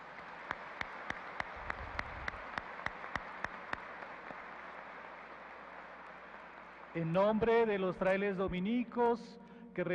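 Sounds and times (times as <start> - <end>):
audience applauding: 0.0 - 7.3
speech: 7.0 - 9.9.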